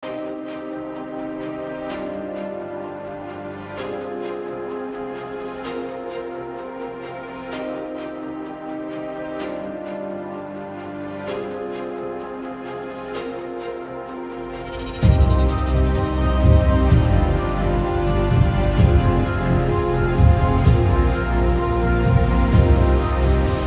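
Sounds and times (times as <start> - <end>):
powerful dramatic impact music: 14.3 - 23.6.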